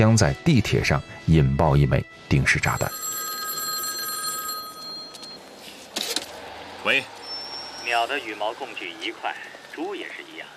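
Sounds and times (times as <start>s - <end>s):
speech: 0.0s - 3.0s, 6.8s - 7.2s, 7.9s - 10.5s
payphone in a phone booth ringing with electronic trill: 2.8s - 5.4s.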